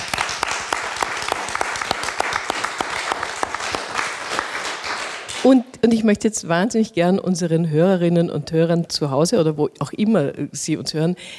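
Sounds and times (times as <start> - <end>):
audience applause: 0.0 - 5.6
speech: 5.4 - 11.3.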